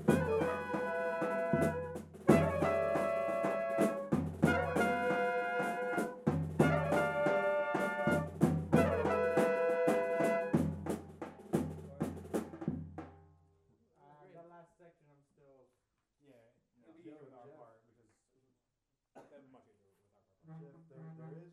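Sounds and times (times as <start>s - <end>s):
melody rehearsal: 0.0s - 8.2s
drums playing in rehearsal: 0.0s - 13.3s.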